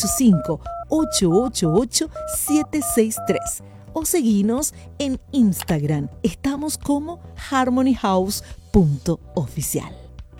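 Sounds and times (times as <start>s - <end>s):
telephone keypad dialing tones: 0.0s - 3.6s
speech: 0.0s - 10.0s.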